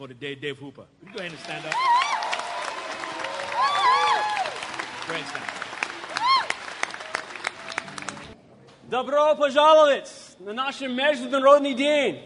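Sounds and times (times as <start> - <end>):
speech: 0.0 - 2.2, 5.1 - 5.7, 8.9 - 12.2
audience clapping to welcome a guest speaker: 1.0 - 8.4
audience cheering: 1.1 - 8.4.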